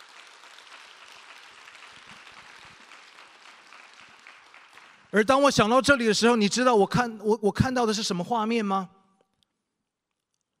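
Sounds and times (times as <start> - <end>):
audience clapping hands in praise: 0.0 - 5.9
speech: 5.1 - 9.0.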